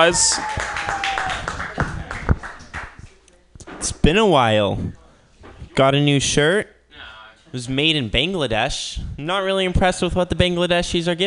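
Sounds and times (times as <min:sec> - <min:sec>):
speech: 0:00.0 - 0:01.2, 0:04.0 - 0:05.0, 0:05.8 - 0:06.7, 0:07.5 - 0:11.2
audience clapping: 0:00.0 - 0:03.1.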